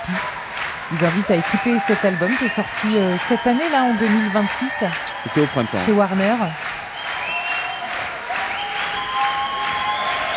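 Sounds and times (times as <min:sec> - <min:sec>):
audience applauding after a song: 0:00.0 - 0:10.3
speech: 0:00.1 - 0:06.8.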